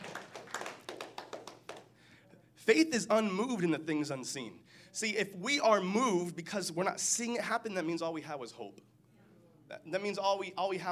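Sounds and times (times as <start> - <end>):
audience clapping: 0.0 - 2.0
speech: 2.7 - 8.9, 9.7 - 10.9.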